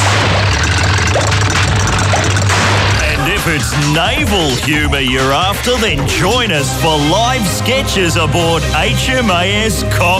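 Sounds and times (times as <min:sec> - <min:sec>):
Super Hornet jet fighter engine roaring: 0:00.0 - 0:07.1
speech: 0:03.5 - 0:10.1.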